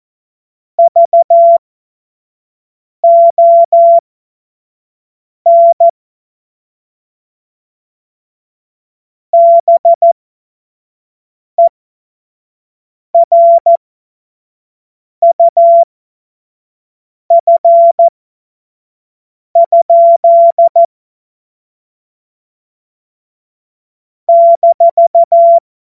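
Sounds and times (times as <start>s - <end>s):
CW Morse code beeps: 0.8s - 1.6s, 3.0s - 4.0s, 5.5s - 5.9s, 9.4s - 10.2s, 13.2s - 13.8s, 15.2s - 15.9s, 17.3s - 18.1s, 19.6s - 20.9s, 24.3s - 25.6s.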